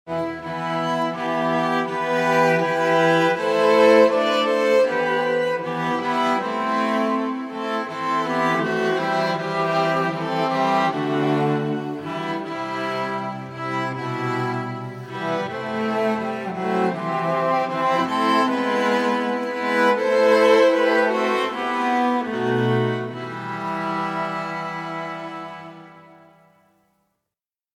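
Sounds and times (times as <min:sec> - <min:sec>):
string instruments playing: 0:00.1 - 0:26.7.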